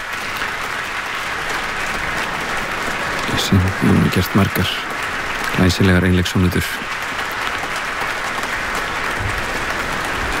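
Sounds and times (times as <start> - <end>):
concert audience applause after a solo violin sonata encore: 0.0 - 10.3
speech: 3.4 - 4.9, 5.6 - 7.0.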